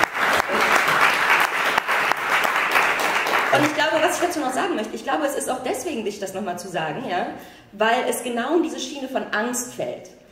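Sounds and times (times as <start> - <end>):
crowd applause: 0.0 - 4.2
speech: 3.6 - 10.2.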